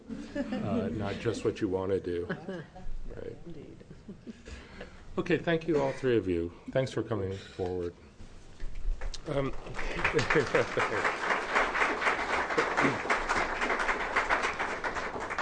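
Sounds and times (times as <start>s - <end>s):
laughter: 0.0s - 1.5s, 2.1s - 2.9s, 9.6s - 11.5s
speech: 0.4s - 3.8s, 5.2s - 8.0s, 9.3s - 11.2s, 12.8s - 13.1s
audience applause: 9.2s - 15.4s.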